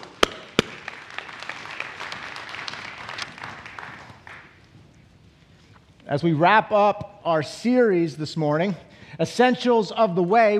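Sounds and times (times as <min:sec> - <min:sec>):
audience clapping hands: 0:00.0 - 0:05.0
speech: 0:06.1 - 0:10.5.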